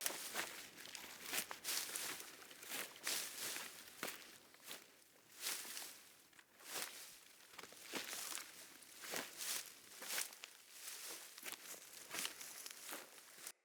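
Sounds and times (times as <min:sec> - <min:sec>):
wolf jogging footsteps on vegetation: 0:00.0 - 0:13.5.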